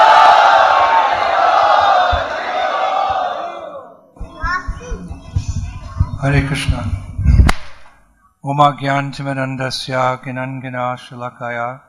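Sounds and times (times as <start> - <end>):
crowd loudly chanting at a Hare Krishna gathering: 0.0 - 6.0
speech: 6.2 - 7.0, 8.5 - 11.8.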